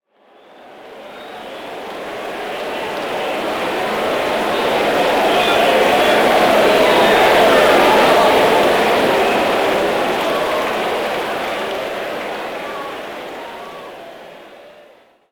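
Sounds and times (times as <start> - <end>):
crowd ambience: 0.2 - 15.3.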